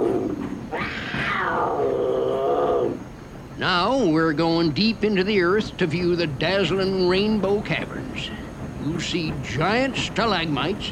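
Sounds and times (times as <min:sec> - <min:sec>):
mountain lion snarling: 0:00.0 - 0:03.0
speech: 0:03.6 - 0:10.8.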